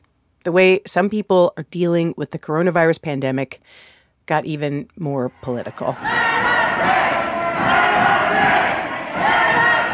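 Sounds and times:
speech: 0:00.4 - 0:08.5
large crowd of angry protesters yelling: 0:05.5 - 0:09.9.

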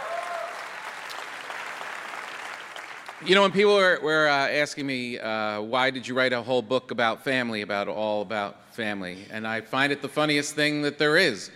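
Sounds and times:
audience applause: 0:00.0 - 0:03.5
speech: 0:03.2 - 0:11.5.

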